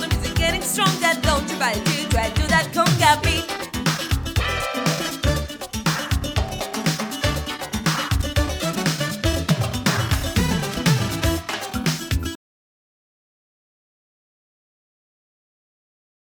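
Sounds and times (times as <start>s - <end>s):
conga drum: 0.0s - 12.4s.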